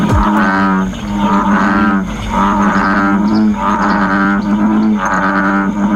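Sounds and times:
American bullfrog loud lowing call: 0.0 - 5.9.

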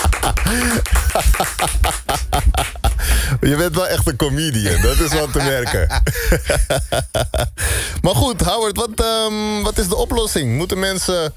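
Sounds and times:
applause: 0.0 - 3.1
laughter: 0.0 - 3.3, 4.5 - 7.6
speech: 0.5 - 2.7, 3.4 - 11.3.

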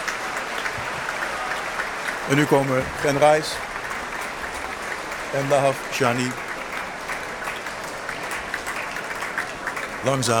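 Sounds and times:
concert audience applauding after a symphony performance: 0.0 - 10.3
speech: 2.3 - 3.7, 5.3 - 6.5, 10.0 - 10.3.

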